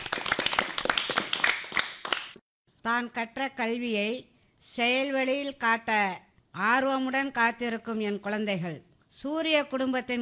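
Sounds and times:
audience clapping at a school event: 0.0 - 2.4
speech: 2.8 - 10.1.

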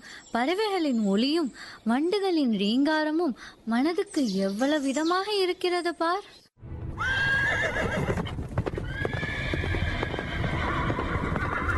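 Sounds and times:
speech: 0.3 - 6.4
horses neighing: 7.0 - 11.7
clatter of hoofbeats: 8.0 - 11.7.

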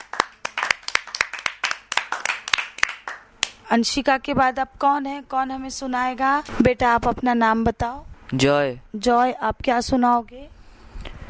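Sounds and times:
children clapping loudly: 0.0 - 3.6
speech: 3.7 - 10.6.

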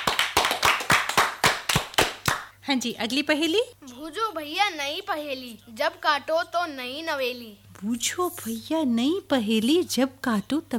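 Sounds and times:
audience clapping in rhythm for a correct riddle answer: 0.0 - 2.6
speech: 2.7 - 10.7.

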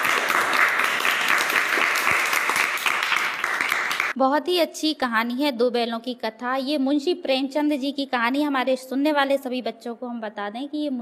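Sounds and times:
villagers clapping: 0.0 - 4.2
speech: 4.2 - 10.9.

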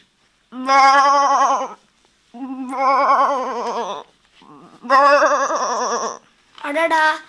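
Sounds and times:
male goat bleating: 0.6 - 1.8, 2.6 - 6.2.

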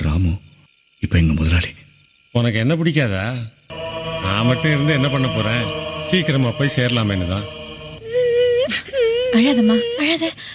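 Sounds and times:
speech: 1.0 - 3.6, 4.2 - 7.6, 8.7 - 10.5
baby crying: 8.0 - 10.5.

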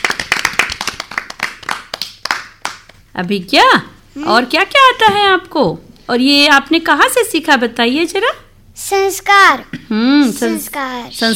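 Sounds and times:
clapping: 0.0 - 3.0
speech: 3.2 - 11.3.

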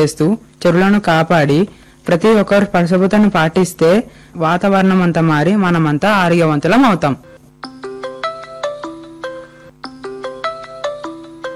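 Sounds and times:
speech: 0.0 - 7.3
phone ringtone for an incoming call: 7.2 - 11.5.

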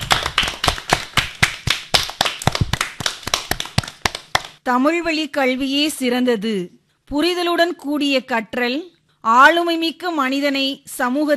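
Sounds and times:
audience applause for a student's speech: 0.0 - 4.5
speech: 4.7 - 11.3.

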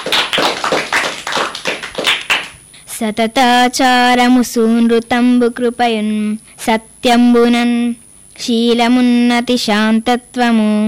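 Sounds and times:
audience clapping in welcome for an eighth-grade student reciting poems: 0.0 - 2.6
speech: 3.0 - 10.8.

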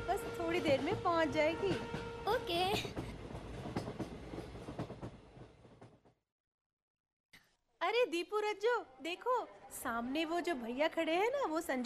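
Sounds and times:
passenger train travelling to Jaipur: 0.2 - 6.2
speech: 0.4 - 3.1, 8.0 - 11.8.

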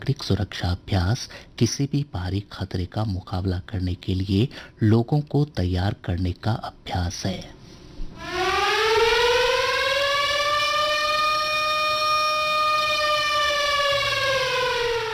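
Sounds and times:
speech: 0.1 - 7.6
civil defense air raid siren wailing: 8.1 - 15.1.

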